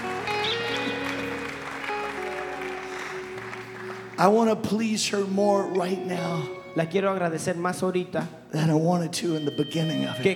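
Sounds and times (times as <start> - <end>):
audience applause: 0.0 - 5.2
speech: 4.2 - 10.3.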